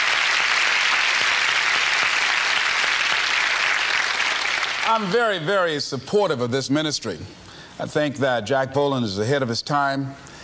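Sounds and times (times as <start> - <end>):
applause: 0.0 - 5.4
speech: 4.9 - 10.3.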